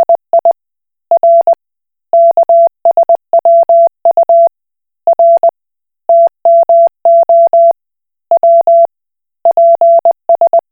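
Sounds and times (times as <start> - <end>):
Koch Morse code beeps: 0.0 - 0.5, 1.2 - 1.5, 2.2 - 4.5, 5.1 - 5.5, 6.1 - 7.8, 8.4 - 8.9, 9.5 - 10.6.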